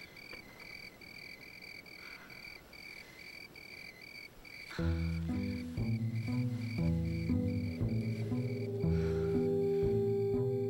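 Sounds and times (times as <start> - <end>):
crickets chirping: 0.0 - 10.6
loud sustained low musical chords: 4.8 - 10.6.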